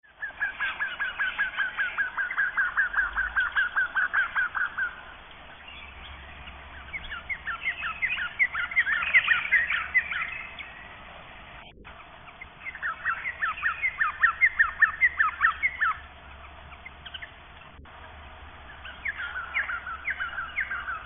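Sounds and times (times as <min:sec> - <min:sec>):
fuscous honeyeater chirping: 0:00.1 - 0:11.0, 0:11.6 - 0:17.9, 0:18.6 - 0:21.0.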